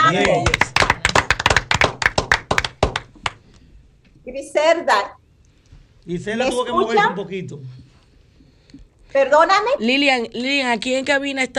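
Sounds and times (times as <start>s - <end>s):
applause in studio: 0.0s - 3.4s
speech: 0.1s - 0.6s, 4.4s - 5.2s, 6.0s - 7.8s, 9.1s - 11.5s.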